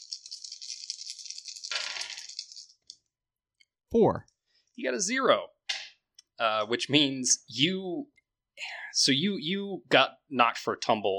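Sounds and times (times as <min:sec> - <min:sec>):
dice rattling in a cup or hand: 0:00.0 - 0:03.0
speech: 0:03.9 - 0:05.6, 0:06.4 - 0:11.1.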